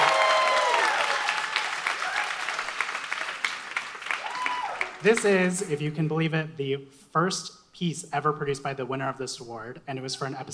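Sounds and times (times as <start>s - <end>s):
audience applause: 0.0s - 5.6s
speech: 5.0s - 10.5s.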